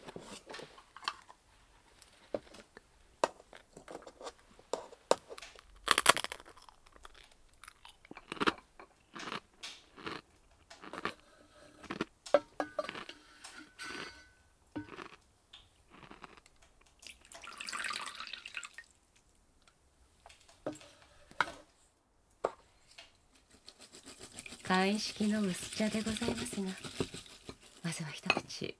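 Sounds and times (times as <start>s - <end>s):
person biting and chewing rice crackers: 0.8s - 13.2s, 14.8s - 17.6s, 23.0s - 28.1s
speech: 24.7s - 27.3s, 28.0s - 28.7s.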